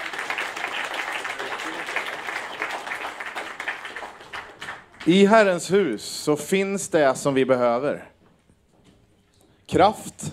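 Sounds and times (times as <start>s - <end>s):
audience applause: 0.0s - 5.3s
speech: 5.0s - 8.1s, 9.7s - 10.3s.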